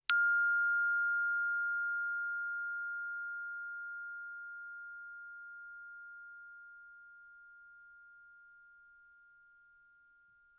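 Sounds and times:
plastic bells: 0.1s - 5.5s.

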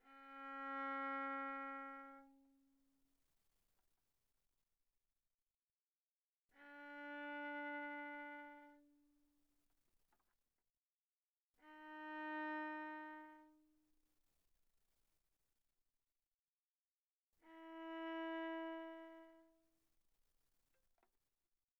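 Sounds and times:
bowed viola on the G string played very softly: 0.0s - 2.6s, 6.6s - 9.2s, 11.6s - 13.8s, 17.4s - 19.7s.

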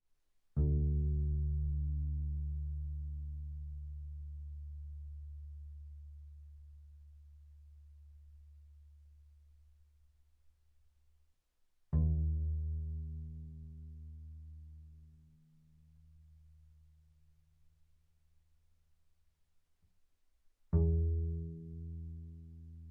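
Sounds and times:
double bass pizzicato on the D string: 0.6s - 8.8s, 11.9s - 16.3s, 20.8s - 22.8s.

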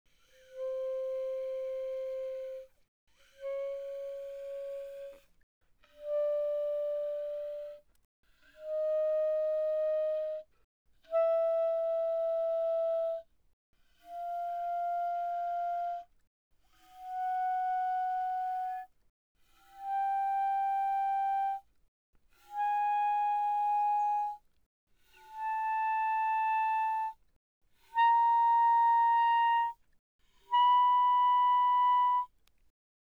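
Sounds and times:
soft E-flat clarinet notes C5 to B5: 0.5s - 2.7s, 3.4s - 5.3s, 5.9s - 7.9s, 8.6s - 10.5s, 11.1s - 13.2s, 14.2s - 16.1s, 17.0s - 18.9s, 19.8s - 21.6s, 22.5s - 24.4s, 25.2s - 27.2s, 27.8s - 29.8s, 30.4s - 32.4s.

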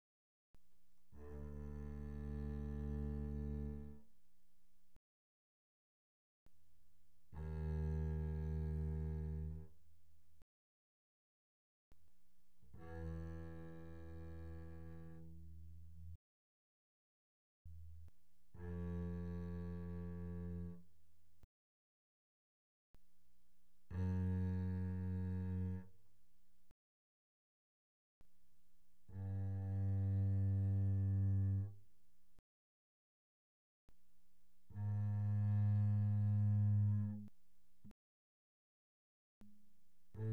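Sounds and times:
double bass bowed pianissimo on the D string: 1.1s - 4.1s, 7.3s - 9.8s, 12.6s - 16.2s, 17.7s - 21.0s, 23.8s - 26.0s, 29.0s - 31.8s, 34.7s - 37.3s, 40.1s - 40.3s.

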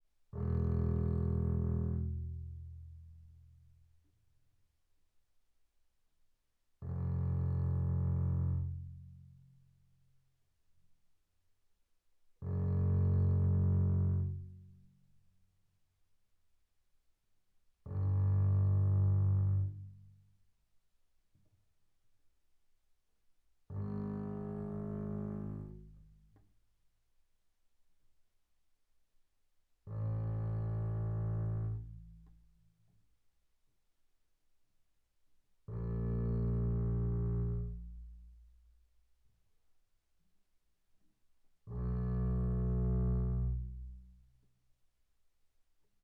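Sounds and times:
double bass played arco on the E string mezzo forte: 0.4s - 3.4s, 6.8s - 9.4s, 12.4s - 14.7s, 17.9s - 20.1s, 23.7s - 26.3s, 29.9s - 32.4s, 35.7s - 38.3s, 41.7s - 44.2s.

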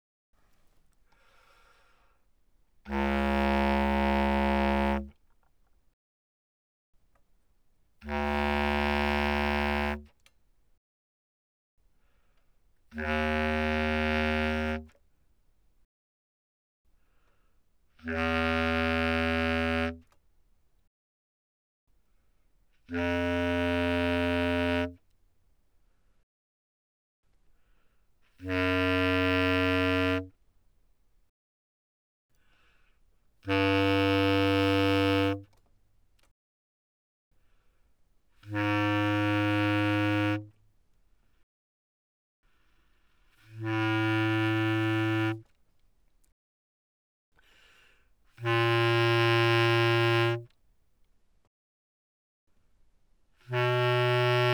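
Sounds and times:
bass clarinet notes: 2.9s - 5.2s, 8.0s - 10.1s, 12.9s - 15.0s, 18.0s - 20.1s, 22.9s - 25.0s, 28.3s - 30.3s, 33.5s - 35.5s, 38.4s - 40.6s, 43.4s - 45.5s, 48.4s - 50.5s, 53.4s - 54.5s.

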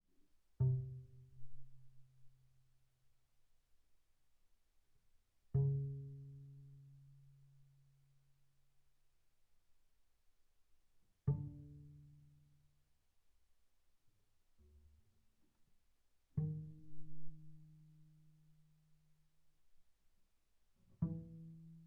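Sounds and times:
double bass pizzicato on D string pianissimo: 0.6s - 2.6s, 5.5s - 8.0s, 11.2s - 12.6s, 16.4s - 19.0s, 20.9s - 21.8s.

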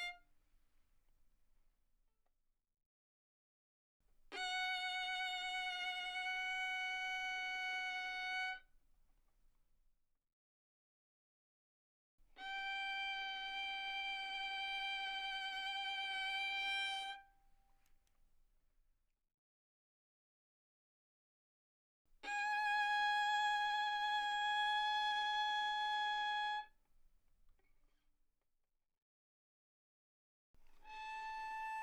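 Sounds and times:
violin bowed mezzo forte on the A string: 0.0s - 0.2s, 4.3s - 8.7s, 12.3s - 17.8s, 22.2s - 26.7s, 30.6s - 31.8s.

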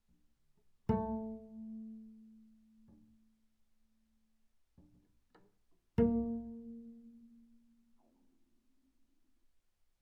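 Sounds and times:
double bass pizzicato sul G fortissimo: 0.9s - 3.2s, 6.0s - 7.8s.

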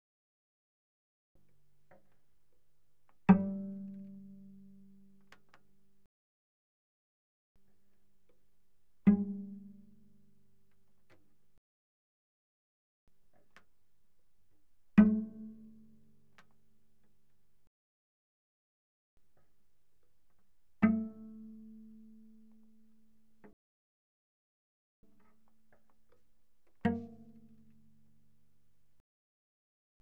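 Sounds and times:
cello pizzicato on the C string: 1.5s - 6.1s, 7.7s - 11.4s, 14.6s - 17.4s, 19.2s - 23.5s, 25.1s - 29.0s.

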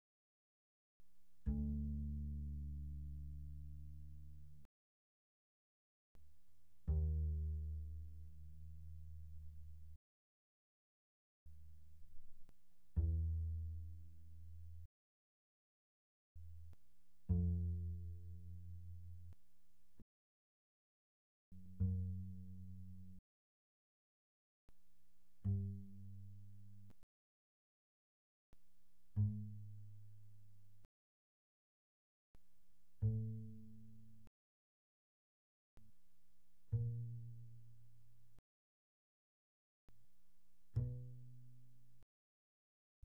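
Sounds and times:
double bass pizzicato pianissimo on the D string: 1.4s - 4.7s, 6.8s - 10.0s, 11.5s - 14.9s, 16.4s - 19.4s, 21.6s - 23.2s, 29.0s - 30.9s, 33.0s - 34.3s, 36.7s - 38.4s, 40.7s - 42.0s.

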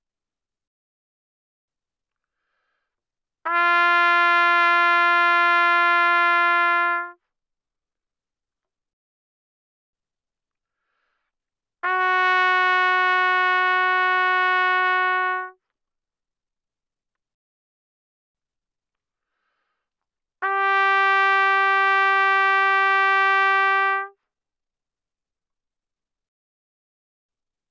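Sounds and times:
trumpet notes C4 to B4 mezzo-forte without vibrato: 3.5s - 7.2s, 11.8s - 15.6s, 20.4s - 24.2s.

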